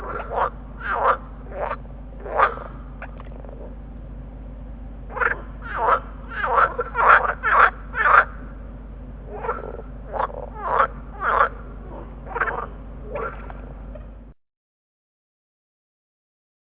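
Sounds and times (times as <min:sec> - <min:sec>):
green frogs calling in chorus: 0:00.0 - 0:03.8, 0:05.1 - 0:08.6, 0:09.2 - 0:13.8.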